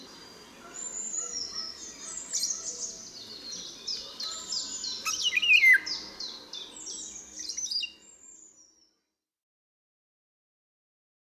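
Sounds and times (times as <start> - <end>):
birds: 0.0 - 8.9.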